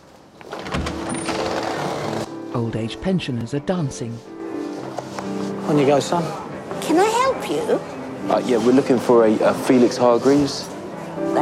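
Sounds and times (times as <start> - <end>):
double doors opening at a community centre: 0.4 - 2.3
speech: 2.6 - 4.3, 5.7 - 10.7.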